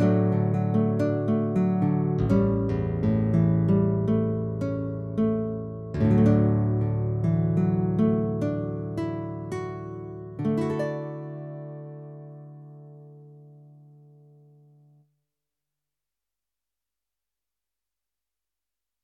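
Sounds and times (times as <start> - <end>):
guitar: 0.0 - 15.0.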